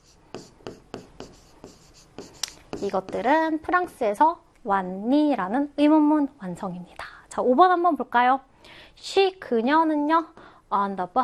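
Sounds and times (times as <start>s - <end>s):
writing on a board during an English grammar lesson: 0.0s - 4.0s
speech: 2.8s - 11.2s.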